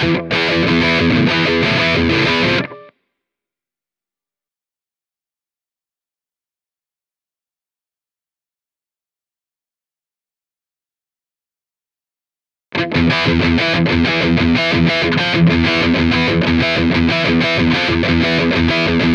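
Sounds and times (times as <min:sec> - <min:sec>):
rhythm guitar: 0:00.0 - 0:02.9, 0:12.8 - 0:19.1.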